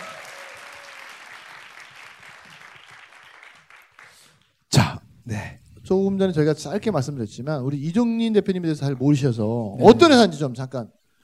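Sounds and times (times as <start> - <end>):
studio audience applause: 0.0 - 4.6
speech: 5.3 - 11.0.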